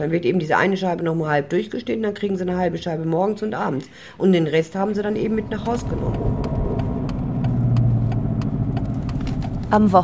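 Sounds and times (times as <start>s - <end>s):
speech: 0.0s - 6.3s, 9.7s - 10.0s
old Mercedes car engine drone: 4.8s - 10.0s
regular faint clicks: 5.6s - 9.7s.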